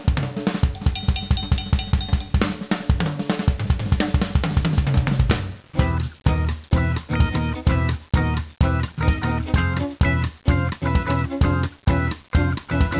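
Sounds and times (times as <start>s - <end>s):
jazz music: 0.1s - 12.9s.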